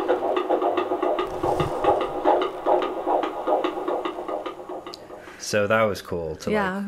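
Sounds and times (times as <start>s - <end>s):
fetal heartbeat on a doppler monitor: 0.0s - 5.4s
speech: 5.5s - 6.8s.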